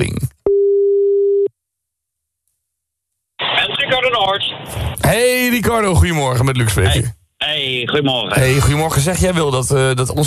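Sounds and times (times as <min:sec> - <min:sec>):
steady single-pitch telephone tone on an outgoing call: 0:00.4 - 0:01.5
burst of broadband noise: 0:03.4 - 0:05.0
speech: 0:04.1 - 0:10.2.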